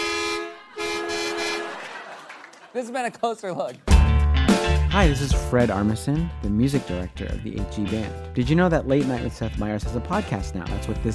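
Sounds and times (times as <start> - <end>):
horn toot sound effect: 0.0 - 1.9
laughter: 0.6 - 3.8
speech: 2.8 - 3.9, 5.0 - 11.1.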